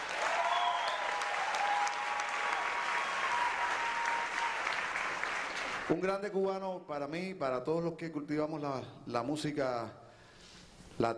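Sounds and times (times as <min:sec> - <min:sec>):
audience applause: 0:00.0 - 0:05.9
speech: 0:05.9 - 0:10.0, 0:11.0 - 0:11.1.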